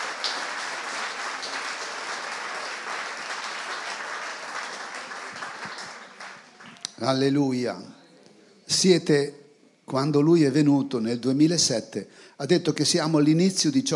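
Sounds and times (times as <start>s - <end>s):
crowd applauding: 0.0s - 7.0s
speech: 7.0s - 8.0s, 8.8s - 13.9s.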